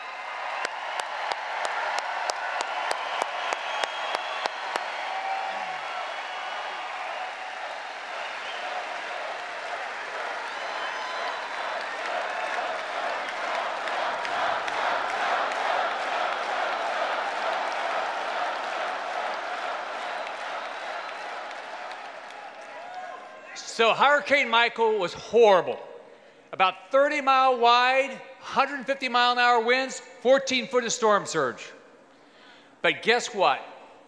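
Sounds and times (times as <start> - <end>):
large crowd applause: 0.0 - 23.6
speech: 23.8 - 25.9, 26.6 - 31.8, 32.8 - 33.7.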